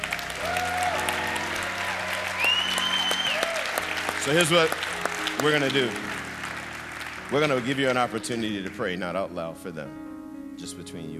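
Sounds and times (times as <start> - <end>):
audience applause: 0.0 - 8.7
speech: 4.2 - 6.2, 7.3 - 11.1.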